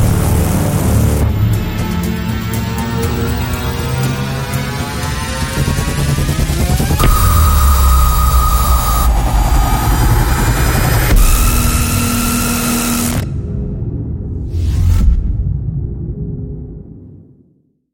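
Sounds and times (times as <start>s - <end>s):
dark cinematic trailer sound effects: 0.0s - 17.3s.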